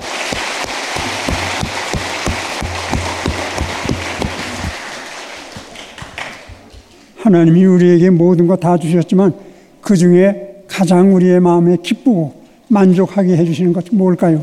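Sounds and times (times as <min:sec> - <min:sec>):
audience applause: 0:00.0 - 0:06.8
speech: 0:07.3 - 0:14.4.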